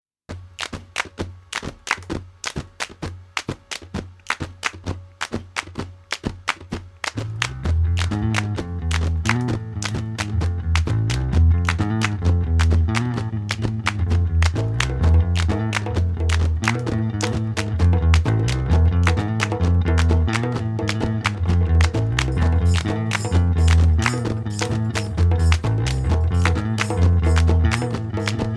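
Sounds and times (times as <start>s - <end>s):
bass: 4.0s - 28.5s.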